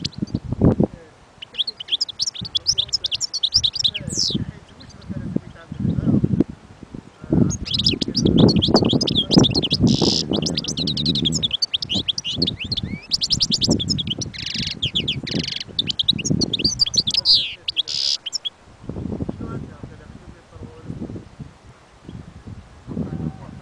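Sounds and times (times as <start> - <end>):
European goldfinch song: 0.0 - 0.4, 1.4 - 5.1, 7.4 - 18.6
low background noise: 0.0 - 23.6.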